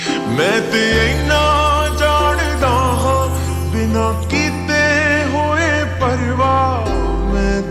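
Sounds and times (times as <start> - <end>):
slowed ringtone with reverb: 0.3 - 7.5.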